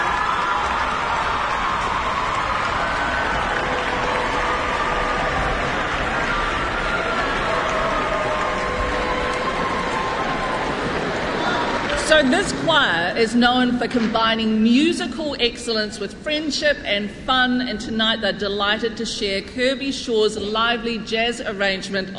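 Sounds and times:
sustained applause from a large audience for a choir: 0:00.0 - 0:12.8
speech: 0:12.2 - 0:22.1.

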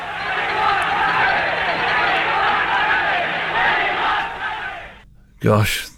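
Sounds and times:
laughter: 0:00.0 - 0:05.0
rugby crowd chanting in protest after a cancelled game: 0:00.0 - 0:05.0.

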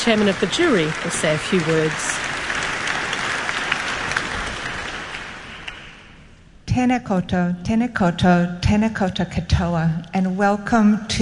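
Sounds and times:
speech: 0:00.0 - 0:02.3, 0:06.8 - 0:11.1
audience applause: 0:00.0 - 0:06.2.

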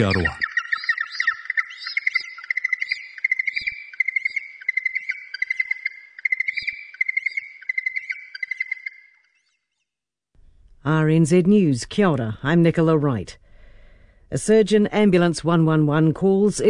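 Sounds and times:
speech: 0:00.0 - 0:00.4, 0:10.8 - 0:13.4, 0:14.3 - 0:16.6
yellow-eyed penguin hoiho call: 0:00.0 - 0:08.9.

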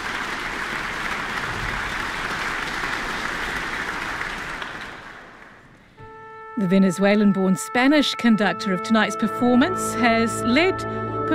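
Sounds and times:
audience applause for concertmaster: 0:00.0 - 0:05.8
speech: 0:06.6 - 0:11.3.

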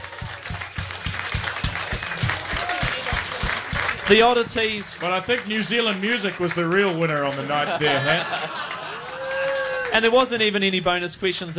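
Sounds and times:
pub quiz crowd applause: 0:00.0 - 0:10.3
speech: 0:04.1 - 0:08.8, 0:09.9 - 0:11.5
laughter: 0:05.2 - 0:10.1
voices calling out: 0:07.6 - 0:10.0.

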